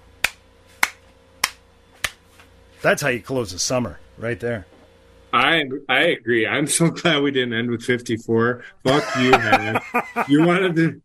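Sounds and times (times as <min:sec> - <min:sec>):
slow hand clapping: 0:00.2 - 0:02.2
speech: 0:02.8 - 0:04.7, 0:05.3 - 0:11.0
laughter: 0:08.9 - 0:10.9.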